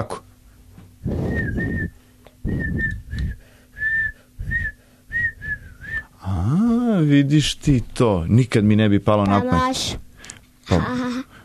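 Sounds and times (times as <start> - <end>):
person whistling a tune: 1.1 - 6.1
speech: 7.1 - 10.0, 10.7 - 11.0.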